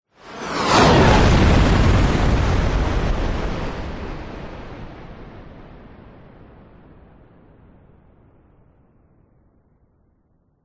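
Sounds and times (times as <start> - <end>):
fighter jet passing by low, close and extremely fast: 0.2 - 5.0.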